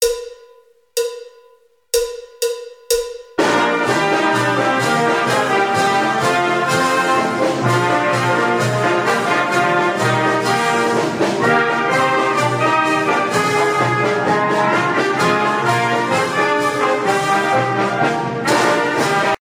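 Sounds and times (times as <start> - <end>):
march music with pickup: 0.0 - 19.3.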